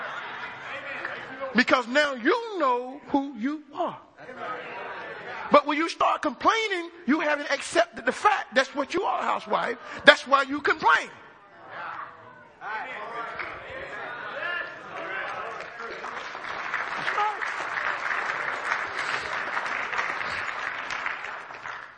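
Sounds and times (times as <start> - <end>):
speech: 1.5 - 4.5, 5.5 - 11.2
audience clapping: 14.8 - 21.9.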